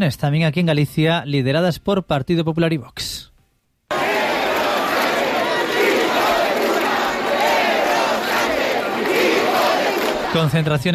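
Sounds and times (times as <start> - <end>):
speech: 0.0 - 3.3, 10.3 - 10.9
protest crowd chanting: 3.9 - 10.5.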